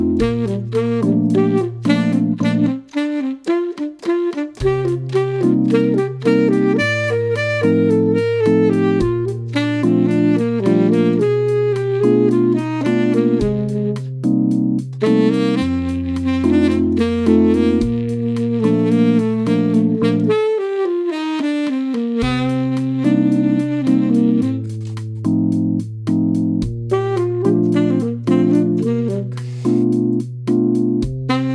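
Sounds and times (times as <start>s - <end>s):
jazz music: 0.0s - 31.5s.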